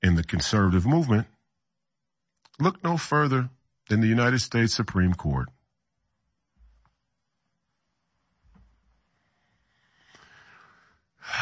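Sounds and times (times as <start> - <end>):
speech: 0.0 - 1.4, 2.6 - 5.6
deep breath in: 9.2 - 11.4.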